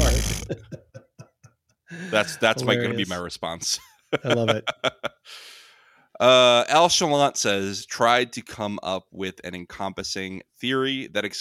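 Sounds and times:
fart noise made with the mouth: 0.0s - 0.8s
laughter: 0.0s - 3.2s, 4.1s - 5.2s
speech: 2.0s - 5.5s, 6.2s - 11.4s.

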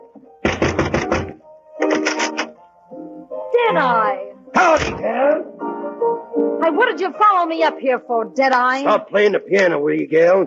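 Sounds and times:
knocking on a wooden cabin door: 0.4s - 1.4s
speech: 3.7s - 5.5s, 6.6s - 10.4s.

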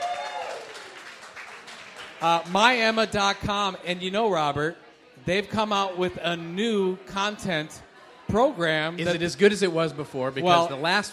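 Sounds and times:
audience applause: 0.0s - 2.9s
speech: 2.2s - 11.1s.

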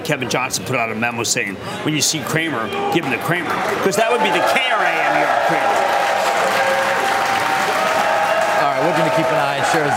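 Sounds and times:
speech: 0.1s - 6.7s, 8.8s - 9.9s
applause at the New York Stock Exchange: 3.6s - 9.9s.

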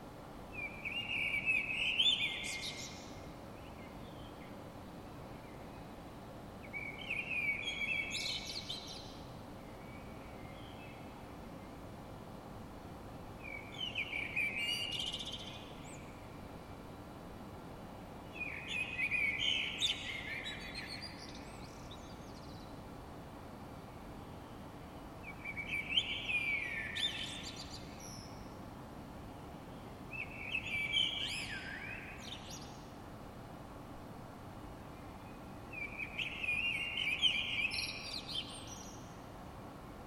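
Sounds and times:
low background hiss: 0.0s - 40.0s
bird song warbling: 0.6s - 4.5s, 6.6s - 11.1s, 13.4s - 16.3s, 18.3s - 22.7s, 25.2s - 28.6s, 29.7s - 32.9s, 35.2s - 39.2s.

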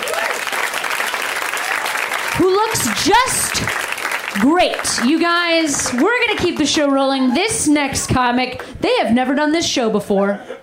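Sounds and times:
audience applause: 0.0s - 7.3s
speech: 2.4s - 10.6s.

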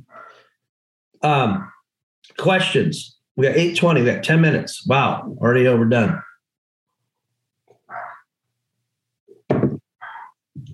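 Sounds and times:
speech: 1.2s - 6.2s
dog barking: 7.9s - 8.2s.

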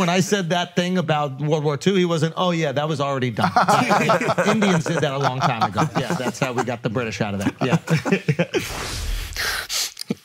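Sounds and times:
speech: 0.0s - 9.7s
laughter: 3.4s - 8.8s
person sniffing a Dr. Squatch bar soap: 8.6s - 10.2s.

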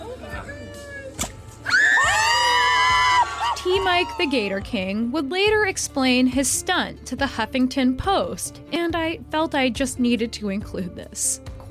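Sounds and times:
crowd cheering and screaming: 1.6s - 4.5s
speech: 4.0s - 11.6s.

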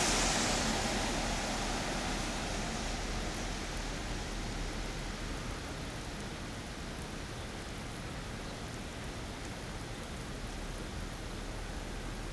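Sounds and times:
car passing on a rainy day: 0.0s - 4.2s
rain and wet road noise: 0.0s - 12.3s.

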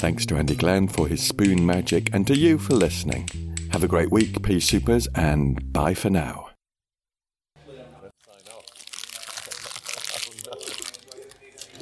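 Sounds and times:
speech: 0.0s - 6.5s
crisp packet crinkled and crushed to simulate interference: 8.2s - 11.7s.

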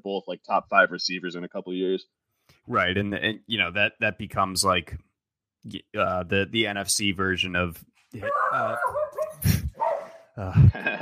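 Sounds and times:
speech: 0.0s - 9.6s, 10.4s - 11.0s
dog barking during a sports talk show recording: 8.2s - 10.3s
laughter: 10.4s - 11.0s.

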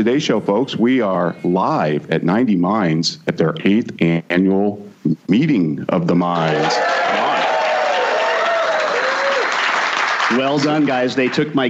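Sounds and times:
speech: 0.0s - 7.0s, 10.3s - 11.6s
audience applause: 6.4s - 11.5s.

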